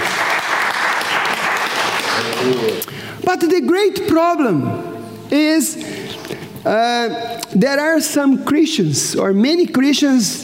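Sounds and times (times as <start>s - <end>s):
audience clapping: 0.0s - 2.9s
speech: 2.4s - 6.0s, 6.6s - 10.4s.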